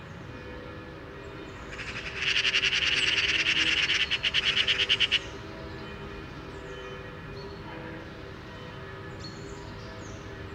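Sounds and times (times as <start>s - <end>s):
Eurasian magpie chattering: 1.8s - 5.3s.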